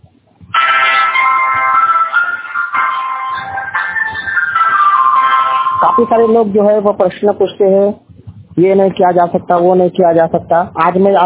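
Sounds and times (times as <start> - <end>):
smartphone power-off jingle: 0.6 - 6.6
speech: 5.9 - 8.0, 8.6 - 11.2.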